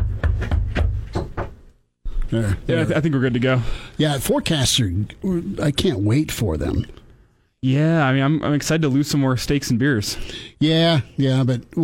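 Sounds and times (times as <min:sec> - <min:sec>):
knocking on a wooden door: 0:00.0 - 0:01.6
speech: 0:02.3 - 0:07.0, 0:07.6 - 0:11.8.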